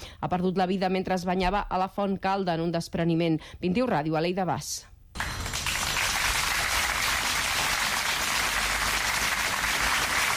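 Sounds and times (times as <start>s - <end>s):
speech: 0.2s - 4.9s
crowd applause after a minute of silence: 5.2s - 10.3s.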